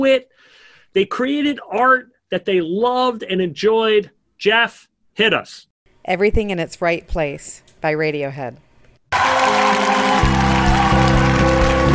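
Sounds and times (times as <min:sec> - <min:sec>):
speech: 0:00.0 - 0:10.3
clapping at start of played song: 0:09.1 - 0:11.9.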